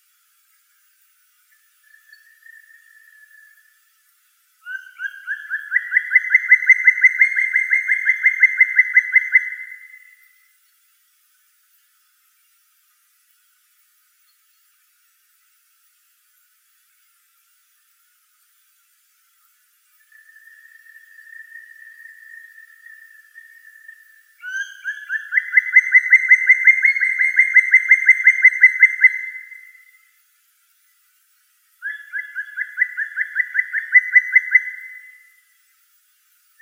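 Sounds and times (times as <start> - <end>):
black woodpecker Dryocopus martius: 4.6 - 10.2, 20.1 - 30.0, 31.8 - 35.4.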